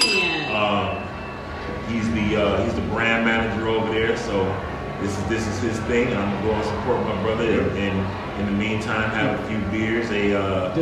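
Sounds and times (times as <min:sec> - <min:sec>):
bell sound effect: 0:00.0 - 0:03.1
speech: 0:01.9 - 0:10.8.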